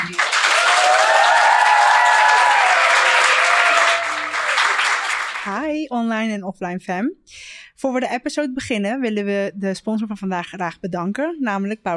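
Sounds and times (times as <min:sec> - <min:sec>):
thunderous applause: 0:00.0 - 0:05.5
speech: 0:05.9 - 0:11.9.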